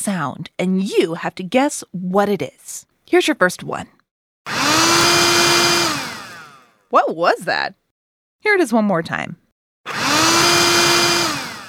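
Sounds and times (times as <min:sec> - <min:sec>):
speech: 0:00.0 - 0:04.0, 0:06.9 - 0:07.8, 0:08.4 - 0:10.0
robotic vacuum cleaner running: 0:04.5 - 0:06.7, 0:09.9 - 0:11.6.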